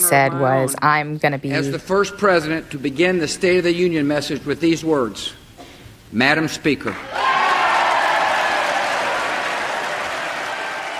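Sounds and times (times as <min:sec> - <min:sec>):
speech: 0:00.1 - 0:05.4, 0:06.1 - 0:07.2
lawmakers applauding in the House chamber: 0:07.0 - 0:10.9.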